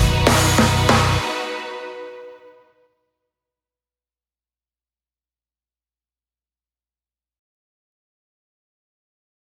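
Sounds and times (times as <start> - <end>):
karaoke singing: 0.0 - 2.3.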